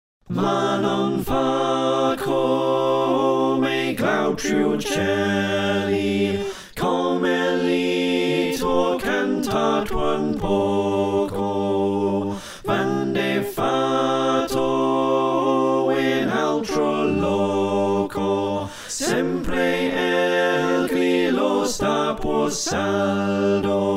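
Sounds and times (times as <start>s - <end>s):
SATB choir singing slowly: 0.3s - 23.9s.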